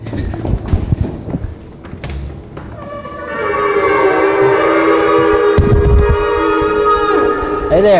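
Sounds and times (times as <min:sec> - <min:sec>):
scattered clatter: 0:00.0 - 0:02.8
several shofars (ram's horns) blowing: 0:02.8 - 0:07.9.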